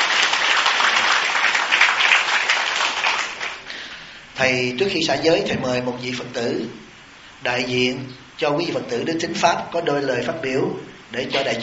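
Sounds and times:
audience applause: 0.0 - 3.9
speech: 4.4 - 11.6.

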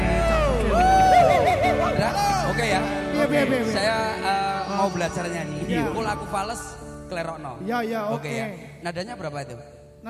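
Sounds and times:
audience applause and cheering: 0.0 - 3.6
speech: 4.8 - 10.0.

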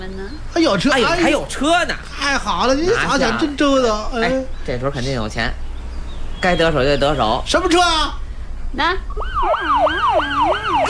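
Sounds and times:
speech: 0.2 - 5.6, 6.4 - 10.8
police car siren: 9.1 - 10.8.

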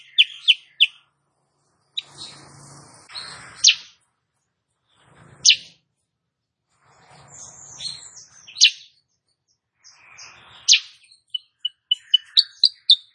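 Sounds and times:
female sooty-headed bulbul singing energetically: 0.0 - 1.1, 1.9 - 4.0, 8.2 - 13.1.

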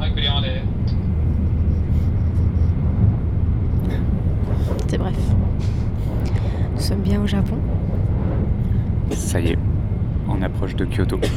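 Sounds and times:
Shinkansen high-speed train noise: 0.0 - 11.3
speech: 6.9 - 7.7, 9.3 - 9.7, 10.4 - 11.3.

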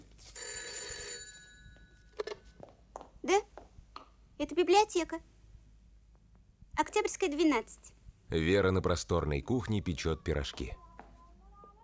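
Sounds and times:
telephone bell ringing: 0.2 - 2.6
speech: 3.3 - 3.5, 4.4 - 5.3, 7.0 - 10.8.

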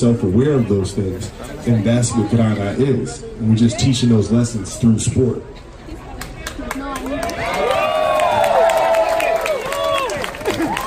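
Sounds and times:
speech: 0.0 - 5.6
audience cheering: 7.1 - 10.8.

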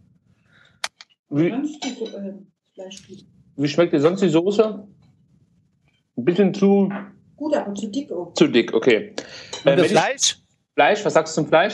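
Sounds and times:
speech: 1.3 - 5.0, 6.2 - 11.7
knife and fork clinking on a plate while cutting roast duck breast: 1.7 - 2.2, 9.5 - 9.9.

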